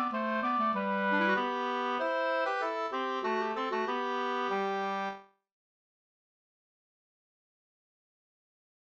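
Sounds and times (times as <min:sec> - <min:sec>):
slangpolska folk dance tune: 0:00.0 - 0:05.2.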